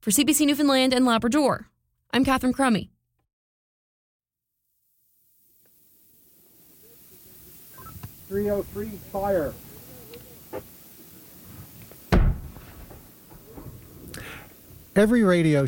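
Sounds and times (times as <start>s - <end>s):
speech: 0.0s - 2.9s, 8.3s - 9.6s, 15.0s - 15.6s
noonday gun firing on Signal Hill: 12.1s - 13.0s.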